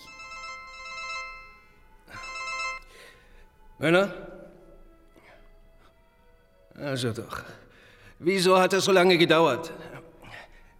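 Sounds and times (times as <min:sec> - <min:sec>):
telephone ringing in an apartment building: 0:00.0 - 0:03.0
speech: 0:03.8 - 0:04.3, 0:06.8 - 0:07.6, 0:08.2 - 0:10.0.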